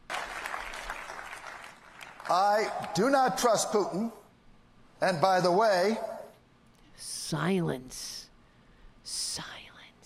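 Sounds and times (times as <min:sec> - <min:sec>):
audience applause: 0:00.0 - 0:02.8
speech: 0:02.3 - 0:04.2, 0:05.0 - 0:06.1, 0:07.0 - 0:08.3, 0:09.0 - 0:09.6.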